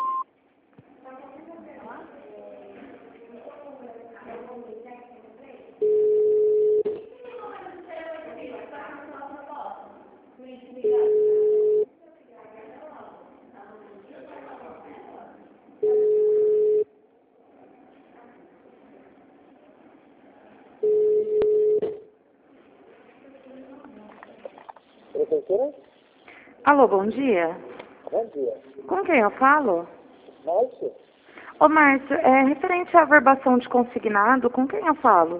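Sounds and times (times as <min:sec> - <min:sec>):
automated phone system beep tones: 0:00.0 - 0:00.2, 0:05.8 - 0:06.9, 0:10.8 - 0:11.9, 0:15.8 - 0:16.9, 0:20.8 - 0:22.1
automated phone system recorded voice speaking: 0:25.1 - 0:25.9, 0:26.7 - 0:35.3
speech: 0:26.7 - 0:31.0, 0:31.6 - 0:35.3.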